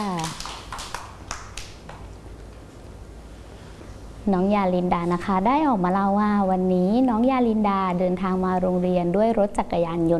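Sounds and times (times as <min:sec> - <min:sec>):
children clapping hands: 0:00.0 - 0:02.1
speech: 0:04.2 - 0:10.1.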